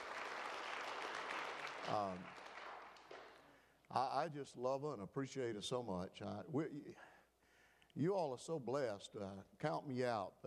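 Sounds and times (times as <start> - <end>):
crowd applause: 0.0 - 3.6
speech: 1.8 - 2.5, 3.9 - 7.1, 8.0 - 10.4.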